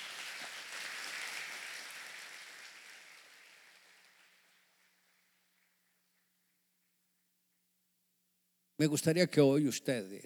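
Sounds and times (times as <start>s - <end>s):
audience applause: 0.0s - 4.7s
speech: 8.8s - 10.2s.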